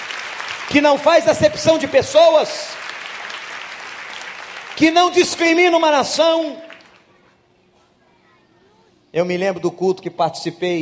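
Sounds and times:
audience applauding: 0.0s - 7.1s
speech: 0.7s - 2.8s, 4.8s - 6.6s, 9.2s - 10.8s.

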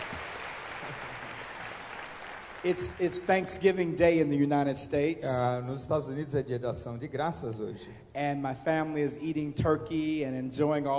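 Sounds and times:
church applause: 0.0s - 3.8s
speech: 2.6s - 10.9s.

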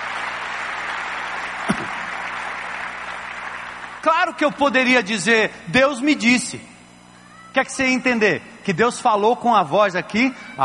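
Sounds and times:
audience applause: 0.0s - 4.8s
speech: 4.0s - 6.7s, 7.6s - 10.6s.

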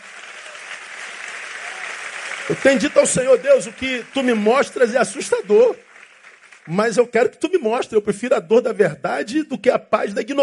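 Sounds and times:
audience applause: 0.0s - 7.2s
speech: 2.5s - 5.9s, 6.6s - 10.4s.

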